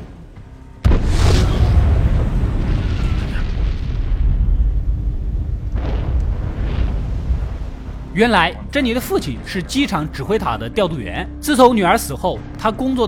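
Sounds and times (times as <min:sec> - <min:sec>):
explosion of two planes colliding midair: 0:00.8 - 0:08.2
speech: 0:08.2 - 0:13.0.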